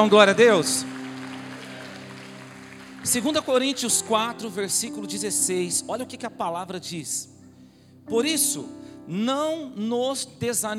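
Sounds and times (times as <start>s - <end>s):
speech: 0.0s - 1.0s, 3.0s - 7.4s, 8.0s - 10.7s
audience applauding: 0.0s - 5.0s.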